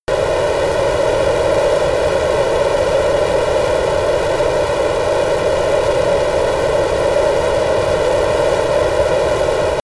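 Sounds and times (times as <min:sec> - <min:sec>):
military jet F-22 Raptor turbine at full power: 0:00.1 - 0:09.8.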